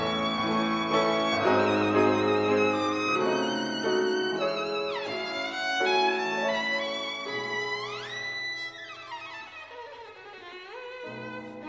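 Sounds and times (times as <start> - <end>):
viol: 0.0 - 8.5.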